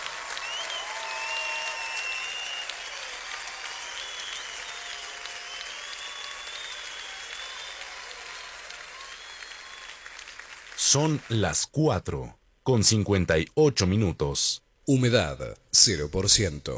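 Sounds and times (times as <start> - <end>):
faint cheers: 0.0 - 11.3
large crowd applause: 0.0 - 11.4
speech: 10.9 - 16.7.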